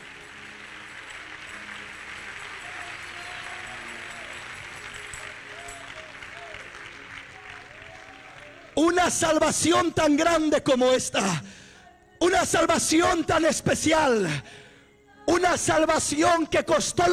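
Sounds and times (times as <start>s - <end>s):
audience clapping hands: 0.0s - 10.4s
speech: 8.8s - 11.6s, 12.2s - 14.6s, 15.3s - 17.1s.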